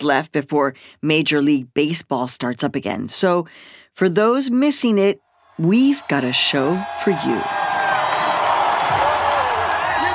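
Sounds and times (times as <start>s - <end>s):
speech: 0.0s - 7.6s
stadium crowd cheering at Dodger Stadium during a 2018 World Series game: 5.5s - 10.1s.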